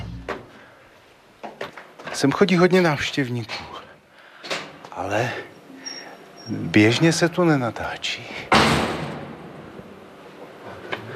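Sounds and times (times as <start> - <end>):
speech: 2.2 - 3.8, 5.0 - 5.5, 6.5 - 8.8
heavy armored door closing: 8.5 - 9.5.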